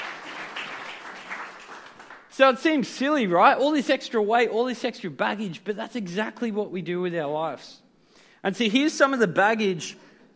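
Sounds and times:
audience clapping: 0.0 - 2.4
speech: 2.4 - 7.8, 8.4 - 10.0.

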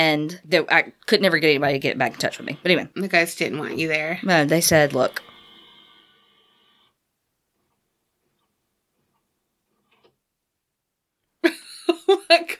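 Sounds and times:
speech: 0.0 - 5.3
printer making a sudden noise: 4.2 - 7.0.

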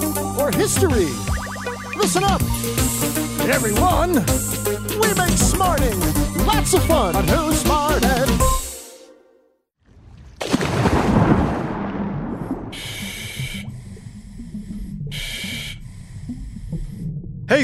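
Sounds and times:
speech: 0.5 - 1.3, 2.0 - 8.5
exhaled bubbles rushing: 0.9 - 3.7, 10.2 - 13.0
scuba diver breathing through a regulator underwater: 2.4 - 5.4, 12.5 - 17.2.

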